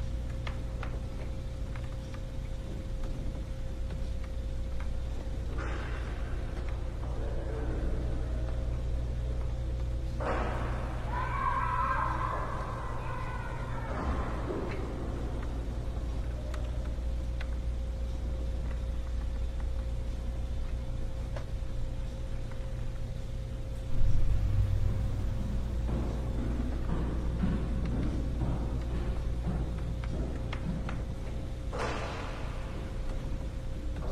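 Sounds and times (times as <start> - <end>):
ambience inside a house: 0.0 - 34.0.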